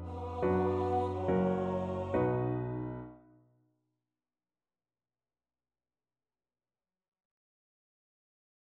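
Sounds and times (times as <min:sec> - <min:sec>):
tenor voice singing: 0:00.0 - 0:02.7.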